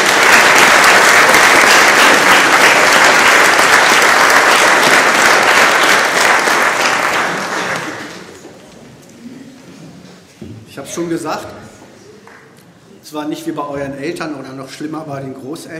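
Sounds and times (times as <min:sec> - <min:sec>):
audience applause for the team: 0:00.0 - 0:08.5
speech: 0:10.9 - 0:11.6, 0:13.1 - 0:15.7.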